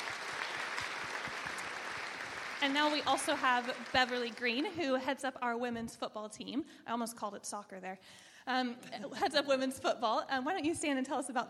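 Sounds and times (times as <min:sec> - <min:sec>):
audience applause: 0:00.0 - 0:04.7
speech: 0:02.6 - 0:11.4.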